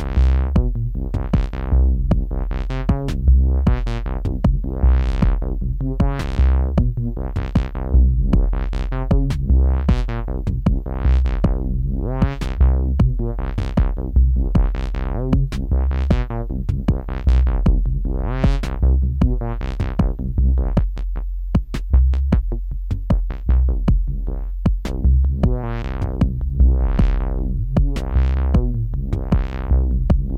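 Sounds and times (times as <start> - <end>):
bass synthesizer test: 0.0 - 30.3.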